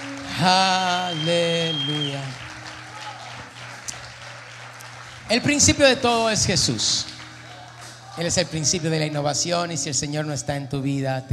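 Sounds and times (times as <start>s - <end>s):
audience applauding: 0.0s - 9.8s
speech: 0.4s - 2.4s, 5.3s - 7.1s, 8.2s - 11.3s.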